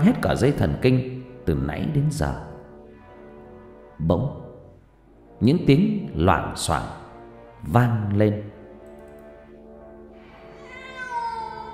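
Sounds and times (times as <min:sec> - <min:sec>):
speech: 0:00.0 - 0:02.5, 0:04.0 - 0:04.4, 0:05.4 - 0:07.0, 0:07.6 - 0:08.5
cat yowling like a crying child: 0:10.5 - 0:11.7.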